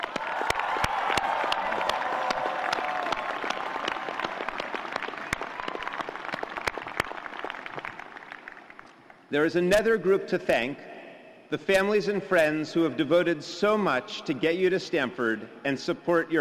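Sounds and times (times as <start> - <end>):
applause at a Stanford commencement for faculty and staff: 0.0 - 9.3
speech: 9.3 - 10.9, 11.5 - 16.3.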